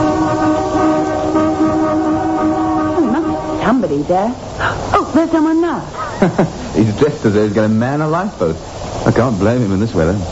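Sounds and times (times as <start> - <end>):
car horn honking: 0.0 - 4.1
speech: 3.8 - 10.3.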